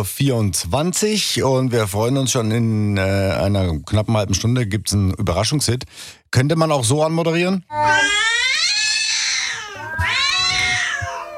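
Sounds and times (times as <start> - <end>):
speech: 0.0 - 8.6
kittens meowing as a song: 7.7 - 11.3.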